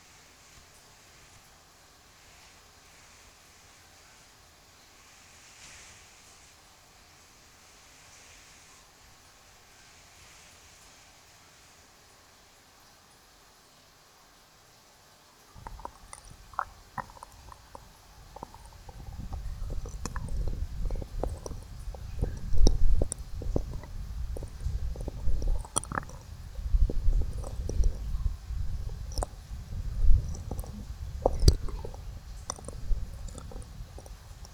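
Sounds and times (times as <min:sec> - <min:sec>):
left ear deep ear-licking massage ASMR: 0:15.6 - 0:34.5.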